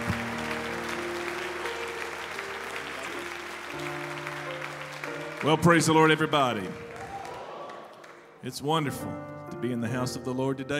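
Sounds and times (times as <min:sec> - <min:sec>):
church congregation applauding to welcome a missionary: 0:00.0 - 0:08.5
speech: 0:05.4 - 0:06.8, 0:08.4 - 0:10.7.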